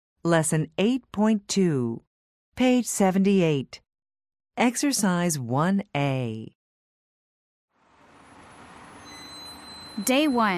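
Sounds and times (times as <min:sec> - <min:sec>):
speech: 0:00.2 - 0:03.8, 0:04.6 - 0:06.6, 0:10.0 - 0:10.5
bus station ambience at Tietê bus station in Sao Paulo: 0:07.8 - 0:10.5.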